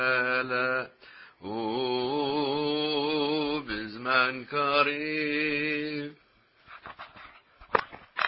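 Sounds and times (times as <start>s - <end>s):
prayer chant in ajam mode: 0.0s - 6.2s.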